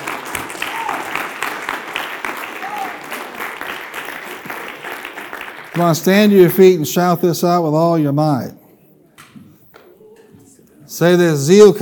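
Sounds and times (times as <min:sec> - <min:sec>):
audience applause: 0:00.0 - 0:06.4
vocal whoops: 0:00.6 - 0:01.2
speech: 0:05.8 - 0:08.6, 0:11.0 - 0:11.7.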